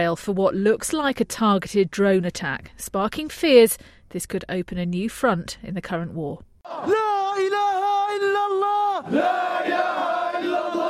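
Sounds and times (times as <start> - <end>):
speech: 0.0 - 7.6, 9.0 - 9.9
protest crowd chanting: 6.6 - 10.8
sustained wavering shout: 6.7 - 10.8.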